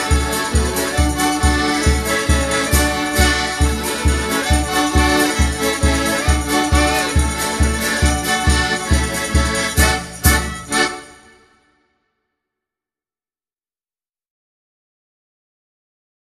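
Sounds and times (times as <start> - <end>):
village band polka: 0.0 - 11.7.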